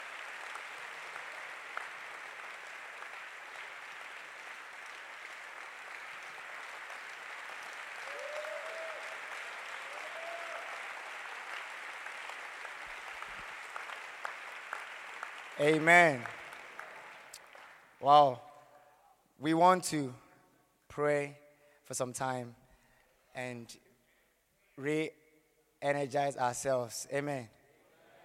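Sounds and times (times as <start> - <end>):
people clapping hands: 0.0 - 18.1
speech: 15.6 - 16.3, 18.0 - 18.4, 19.4 - 20.2, 21.0 - 22.6, 23.4 - 23.8, 24.8 - 25.2, 25.8 - 27.6.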